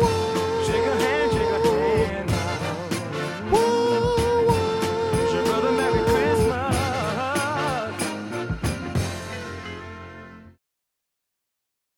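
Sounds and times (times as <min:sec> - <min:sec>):
soprano singing: 0:00.0 - 0:08.2.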